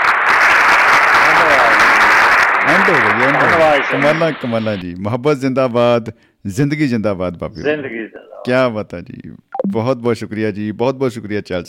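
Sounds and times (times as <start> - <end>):
audience applause at a birthday celebration: 0.0 - 4.8
speech: 2.9 - 11.6.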